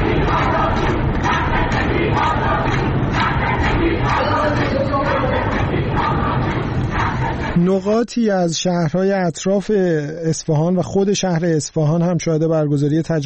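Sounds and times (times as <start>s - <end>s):
protesting crowd of lawyers chanting: 0.0s - 7.8s
speech: 7.7s - 13.2s.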